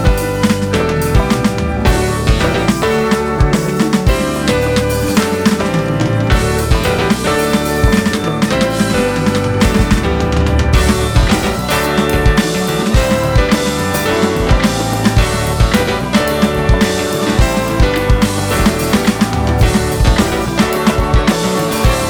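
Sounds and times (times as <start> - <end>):
live drums: 0.0 - 22.0
piano: 0.0 - 22.0.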